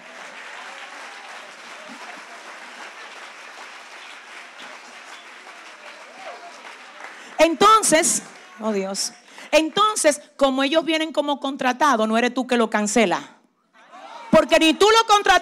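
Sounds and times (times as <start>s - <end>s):
audience applause: 0.0s - 10.0s
speech: 7.4s - 13.4s, 14.4s - 15.3s.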